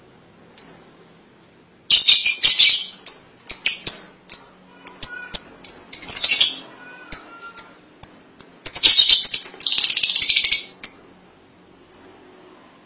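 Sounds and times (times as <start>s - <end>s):
lovebird chirping: 0.5s - 0.9s, 1.9s - 11.2s, 11.9s - 12.2s.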